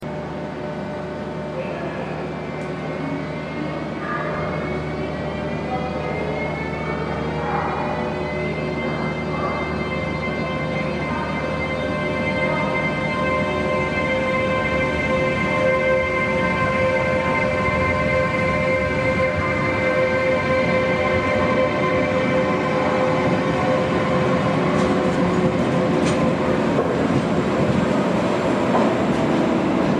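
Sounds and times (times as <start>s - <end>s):
Siemens Eurosprinter locomotive: 0.0s - 29.9s.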